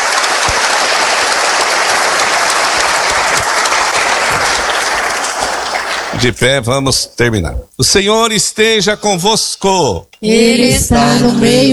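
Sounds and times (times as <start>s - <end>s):
audience applause: 0.0s - 6.4s
speech: 6.2s - 11.7s.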